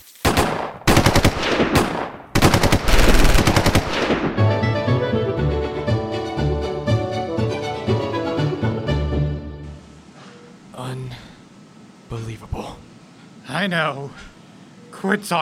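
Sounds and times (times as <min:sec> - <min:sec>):
automatic machine-gun fire in a shootout: 0:00.2 - 0:04.5
music: 0:04.4 - 0:09.9
speech: 0:13.6 - 0:14.3, 0:15.0 - 0:15.4.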